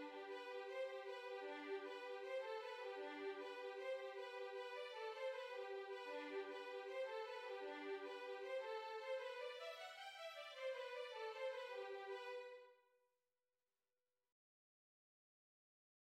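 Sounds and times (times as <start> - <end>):
fiddle melody: 0.0 - 12.6.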